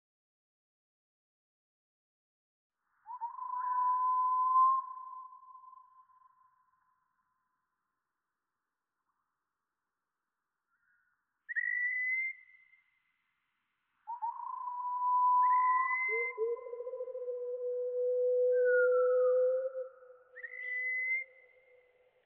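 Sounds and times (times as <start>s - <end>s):
Wallcreeper call slowed down: 3.0s - 6.8s, 10.8s - 12.9s, 14.0s - 22.1s.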